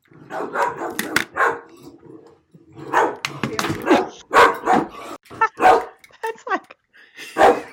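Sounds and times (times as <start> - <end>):
dog barking: 0.2 - 1.7, 2.8 - 3.2, 3.8 - 6.0, 7.4 - 7.7
speech: 0.3 - 0.8.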